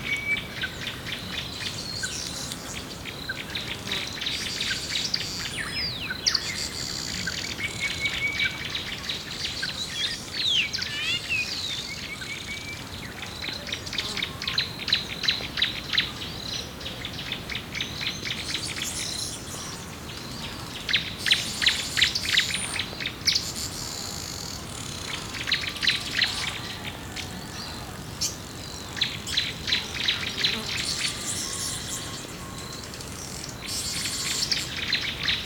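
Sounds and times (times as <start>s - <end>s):
rainforest woodland birds: 0.0s - 35.4s
wind in rainforest woodlands: 0.0s - 35.4s
flies in rainforest woodlands: 23.6s - 32.4s.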